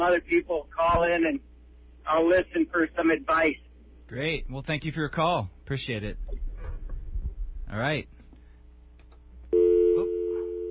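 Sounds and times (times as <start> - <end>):
speech: 0.0 - 1.5, 2.1 - 6.4, 7.7 - 8.2
telephone line tone from a missed call: 9.5 - 10.6.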